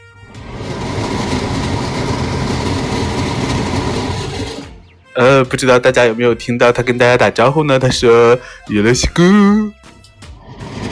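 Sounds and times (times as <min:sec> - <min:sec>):
kitchen range hood running: 0:00.3 - 0:04.8
speech: 0:05.2 - 0:09.8.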